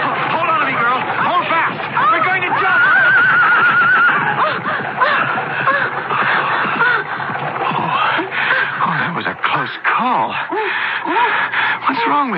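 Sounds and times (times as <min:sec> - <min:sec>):
horse-drawn chariot rushing past with clattering hooves and rumbling wheels: 0:00.0 - 0:09.8
laughter: 0:00.0 - 0:12.3
horse neighing: 0:01.5 - 0:09.7.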